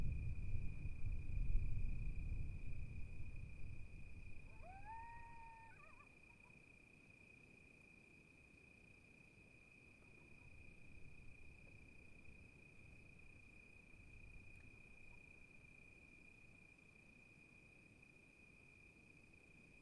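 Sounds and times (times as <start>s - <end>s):
gusty wind: 0.0s - 4.5s
high-pitched insect hum: 2.6s - 19.7s
coyote howling: 4.5s - 6.2s.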